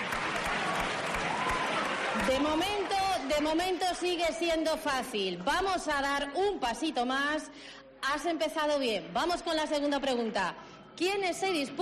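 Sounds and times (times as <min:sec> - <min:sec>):
applause: 0:00.0 - 0:04.4
speech: 0:02.3 - 0:11.8.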